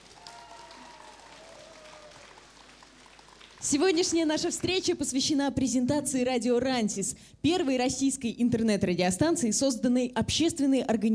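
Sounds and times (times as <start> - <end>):
audience applause: 0.0 - 4.9
speech: 3.6 - 11.1.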